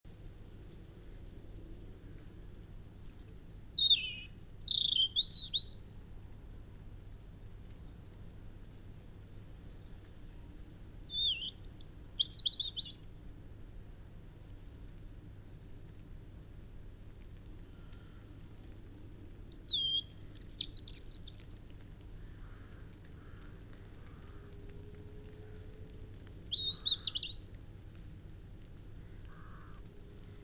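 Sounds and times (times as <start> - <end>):
European robin warbling song: 2.6 - 5.8, 11.1 - 13.0, 19.4 - 21.6, 26.0 - 27.4.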